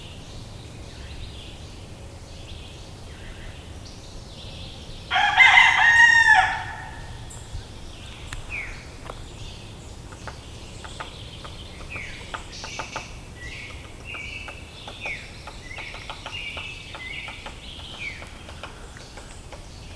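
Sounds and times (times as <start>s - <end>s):
rooster crowing: 5.1s - 7.3s.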